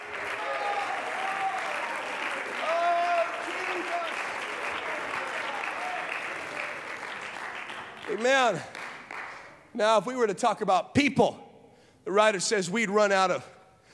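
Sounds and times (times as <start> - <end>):
audience clapping hands: 0.0 - 9.8
speech: 8.1 - 8.8, 9.8 - 11.4, 12.0 - 13.5.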